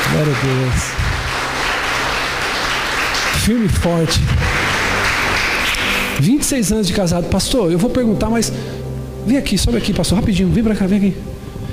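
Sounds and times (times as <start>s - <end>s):
crowd applause: 0.0s - 6.2s
speech: 0.2s - 1.1s, 3.4s - 4.6s, 6.2s - 11.3s.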